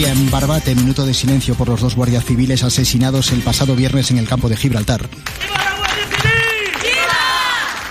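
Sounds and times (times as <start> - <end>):
speech: 0.1 - 5.6
crowd shouting against the minister: 5.4 - 7.7.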